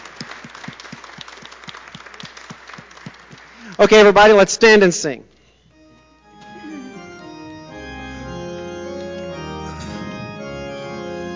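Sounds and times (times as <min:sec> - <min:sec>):
audience applause: 0:00.0 - 0:04.2
speech: 0:03.8 - 0:05.3.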